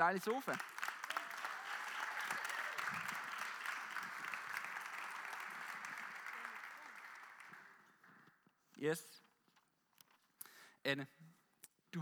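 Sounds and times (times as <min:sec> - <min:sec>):
speech: 0:00.0 - 0:00.8, 0:08.8 - 0:09.2, 0:10.8 - 0:11.3
audience applause: 0:00.0 - 0:08.3.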